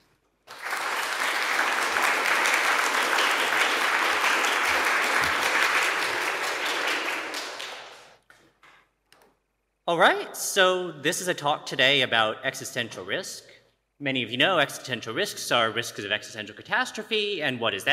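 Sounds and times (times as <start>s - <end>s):
audience applause welcoming a speaker: 0.5s - 8.2s
speech: 9.9s - 17.9s.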